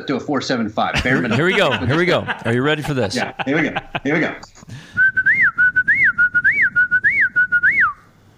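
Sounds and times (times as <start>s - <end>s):
speech: 0.0s - 4.9s
laughter: 1.0s - 4.8s
person whistling whippoorwill call imitation: 5.0s - 8.0s.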